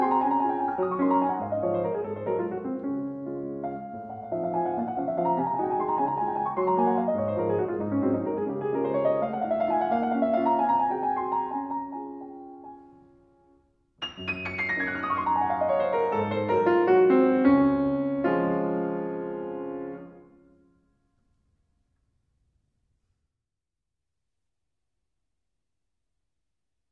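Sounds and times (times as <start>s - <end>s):
piano waltz in D flat major: 0.0s - 20.9s.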